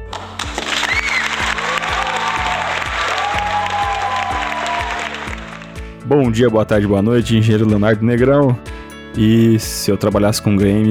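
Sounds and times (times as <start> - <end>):
huge round of applause: 0.0 - 6.0
low rhythmic musical pulse: 0.0 - 10.9
speech: 6.1 - 10.9.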